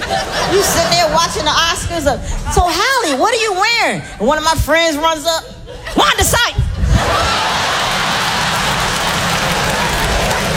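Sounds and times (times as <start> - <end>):
laughter: 0.0 - 1.4
speech: 0.1 - 7.5
crowd applause: 7.0 - 10.5.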